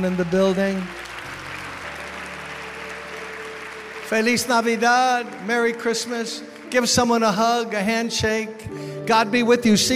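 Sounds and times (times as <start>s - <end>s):
speech: 0.0s - 1.0s, 4.1s - 9.9s
audience applauding in praise: 0.0s - 7.4s.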